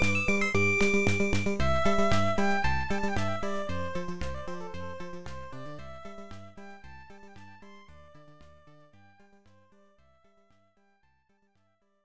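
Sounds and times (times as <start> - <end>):
main background music: 0.0 - 9.2.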